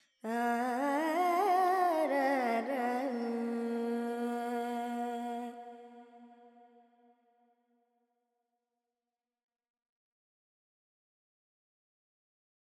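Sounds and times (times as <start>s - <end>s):
Carnatic female vocal alaps in Dorian mode: 0.2s - 6.6s.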